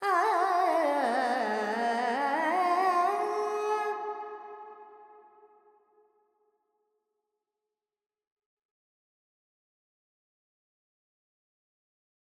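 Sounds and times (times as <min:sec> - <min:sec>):
Carnatic female vocal alaps in Dorian: 0:00.0 - 0:04.3.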